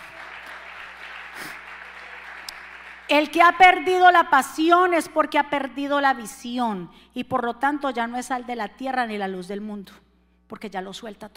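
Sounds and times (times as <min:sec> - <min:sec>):
audience applauding: 0:00.0 - 0:03.2
speech: 0:03.1 - 0:11.3.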